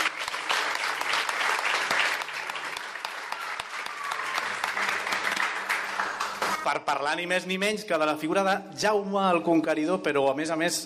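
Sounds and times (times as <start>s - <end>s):
live audience applause: 0.0s - 6.8s
speech: 6.6s - 10.8s.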